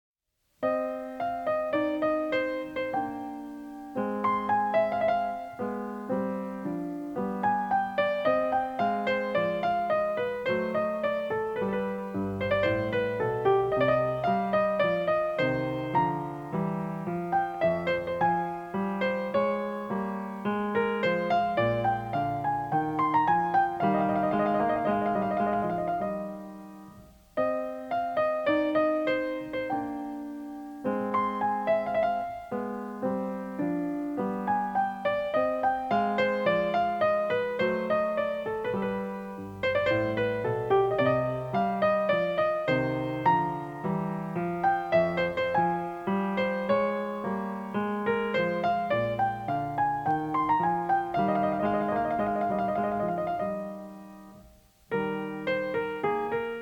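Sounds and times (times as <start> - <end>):
classical piano: 0.4 - 56.6.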